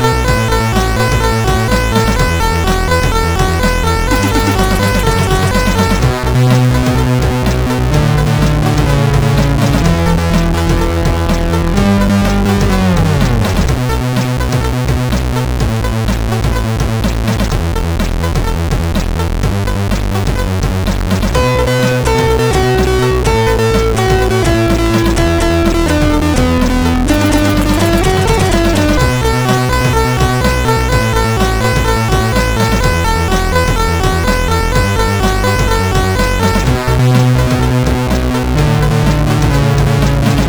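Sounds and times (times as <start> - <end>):
SID CSG8580R5 chip synthesizer sound: 0.0 - 40.4.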